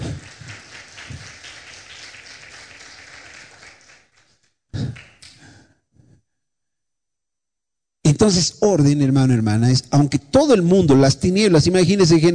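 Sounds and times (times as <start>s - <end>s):
crowd applause: 0.0s - 5.3s
speech: 8.2s - 12.3s.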